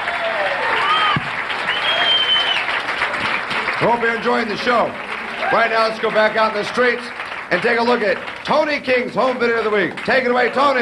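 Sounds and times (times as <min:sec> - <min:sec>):
faint whoops: 0:00.0 - 0:02.7
audience applause: 0:00.0 - 0:10.8
speech: 0:03.8 - 0:10.8.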